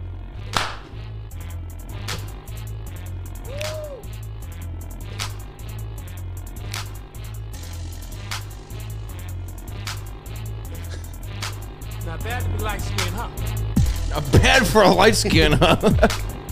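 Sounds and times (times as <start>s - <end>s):
hands clapping: 0.5s - 1.0s, 3.5s - 4.0s, 6.7s - 7.0s
laughter: 10.7s - 11.1s, 14.2s - 16.4s
speech: 12.6s - 16.2s.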